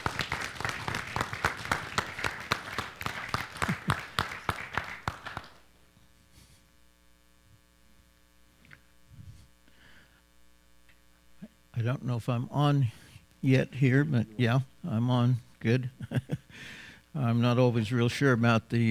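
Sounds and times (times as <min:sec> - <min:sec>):
audience applause greeting two guests arriving on stage: 0:00.0 - 0:05.7
faint steady electrical hum: 0:00.0 - 0:18.9
speech: 0:11.9 - 0:16.1, 0:17.2 - 0:18.9.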